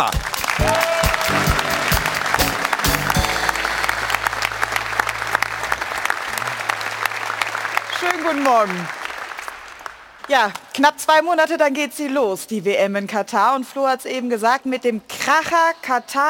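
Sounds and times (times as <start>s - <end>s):
speech: 0.0s - 0.8s, 8.5s - 9.0s, 10.3s - 16.2s
audience applause: 0.0s - 10.5s
low hum: 3.0s - 7.8s.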